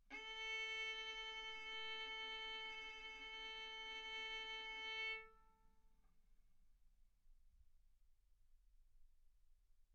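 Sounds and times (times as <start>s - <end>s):
violin bowed mezzo-forte on the A string, A4 and B4: 0.1s - 5.3s.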